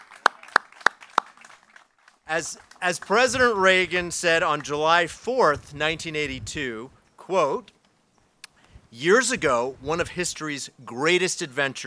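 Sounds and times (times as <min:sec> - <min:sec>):
hand claps: 0:00.0 - 0:03.2
speech: 0:02.3 - 0:07.8, 0:08.9 - 0:11.8.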